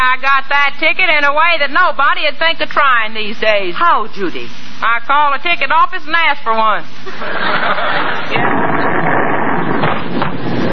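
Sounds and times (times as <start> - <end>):
speech: 0.2 - 8.6
laughter: 7.0 - 8.3
kitchen stove explosion: 7.7 - 10.7.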